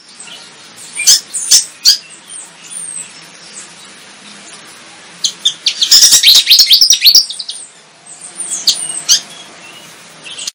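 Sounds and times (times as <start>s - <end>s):
Javan flycatcher singing vigorously: 0.0s - 10.5s.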